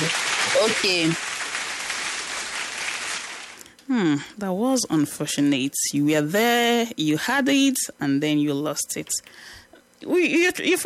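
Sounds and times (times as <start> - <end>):
applause: 0.0 - 3.6
speech: 0.6 - 1.3, 3.9 - 10.8.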